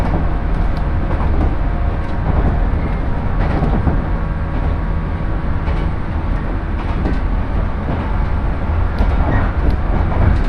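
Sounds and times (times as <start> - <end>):
Shinano Railway and Hokuriku Shinkansen train rumbling: 0.0 - 10.4.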